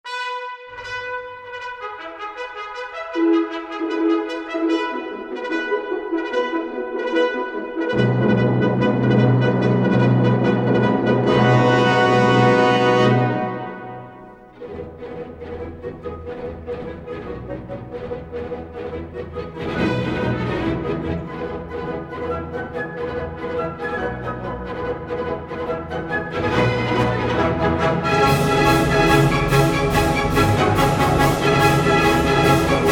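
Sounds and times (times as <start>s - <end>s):
horse race instrumental music: 0.1s - 32.9s.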